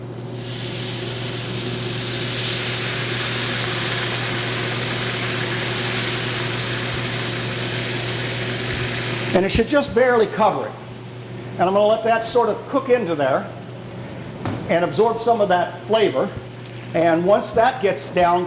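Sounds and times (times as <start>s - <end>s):
low constant hum: 0.0s - 18.4s
chicken broth poured into hot cooking pan: 0.2s - 9.4s
speech: 9.4s - 10.8s, 11.6s - 13.6s, 14.7s - 18.4s.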